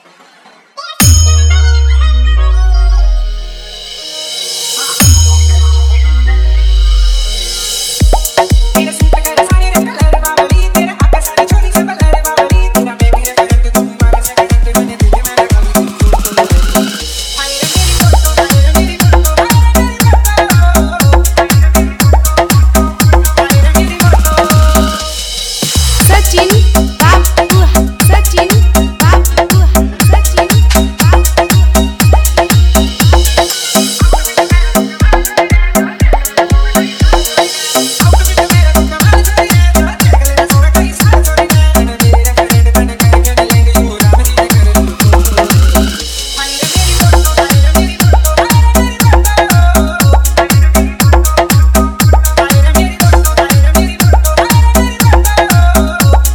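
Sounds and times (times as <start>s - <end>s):
hard bass: 1.0s - 3.8s, 5.0s - 37.4s, 38.0s - 56.3s.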